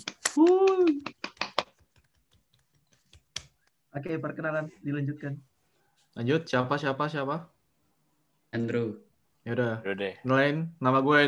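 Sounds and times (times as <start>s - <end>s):
hand clapping: 0.0s - 3.8s
speech: 4.0s - 5.5s, 6.2s - 7.6s, 8.5s - 11.2s.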